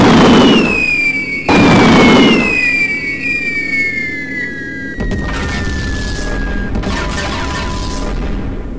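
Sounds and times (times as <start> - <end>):
loud booming blasts: 0.0 - 2.9, 5.0 - 8.7
high whistling tones sliding downward: 0.4 - 8.3.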